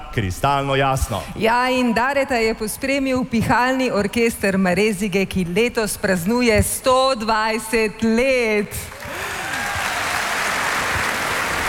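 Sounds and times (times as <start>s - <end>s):
speech: 0.2s - 9.0s
audience applause: 8.9s - 11.6s.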